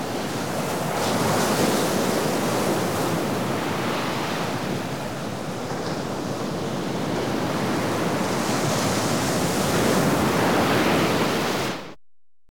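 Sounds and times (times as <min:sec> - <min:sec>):
medium to heavy waves coming in with spray: 0:00.0 - 0:11.9.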